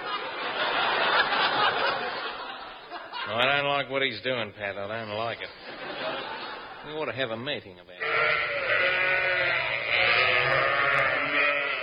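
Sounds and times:
laughter: 0:00.0 - 0:03.7, 0:05.4 - 0:07.0
speech: 0:03.8 - 0:05.9, 0:06.8 - 0:08.5
flock of sheep bleating while being fed: 0:08.0 - 0:11.8.

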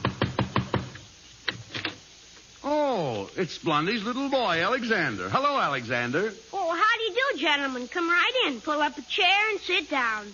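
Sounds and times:
knocking on a front door: 0:00.0 - 0:01.0
speech: 0:02.7 - 0:06.5, 0:07.1 - 0:10.3.

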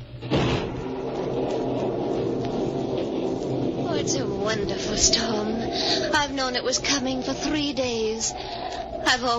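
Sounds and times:
window being opened: 0:00.3 - 0:05.3
speech: 0:04.1 - 0:09.3.

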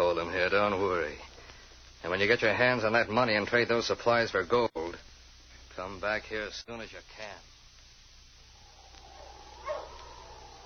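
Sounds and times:
speech: 0:00.2 - 0:01.3, 0:02.0 - 0:05.0, 0:05.9 - 0:07.5
sled dogs barking: 0:08.7 - 0:10.6.

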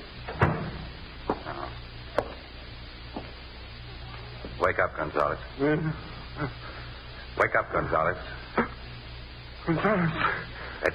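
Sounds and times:
door closing: 0:00.3 - 0:01.7
speech: 0:04.7 - 0:06.7, 0:07.4 - 0:08.8, 0:09.7 - 0:10.9.

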